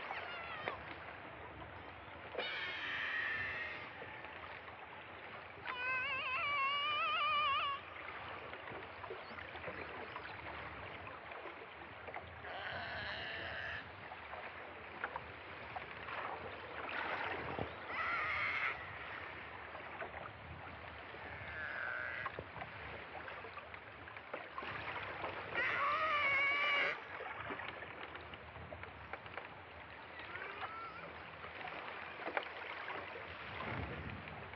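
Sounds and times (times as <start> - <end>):
killer whale tonal squeals: 0.0 - 0.9, 2.4 - 4.1, 5.6 - 8.0, 17.9 - 18.8, 21.3 - 22.3, 25.6 - 27.0, 30.3 - 31.2
steady underwater noise: 0.0 - 28.2, 29.3 - 34.5.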